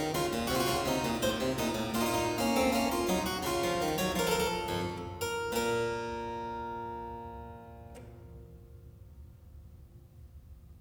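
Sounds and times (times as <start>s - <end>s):
two-part keyboard invention in B minor: 0.0s - 7.2s.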